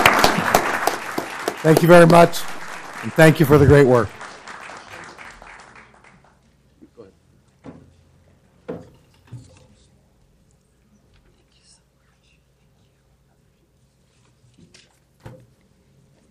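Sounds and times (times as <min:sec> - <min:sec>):
audience applause: 0:00.0 - 0:06.4
speech: 0:01.6 - 0:04.2.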